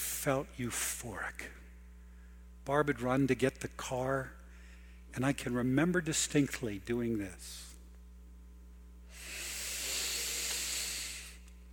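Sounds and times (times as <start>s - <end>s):
low electrical hum: 0.0s - 11.7s
speech: 0.2s - 1.7s, 2.6s - 4.4s, 5.1s - 7.7s
deep breath of outside air: 9.1s - 11.4s.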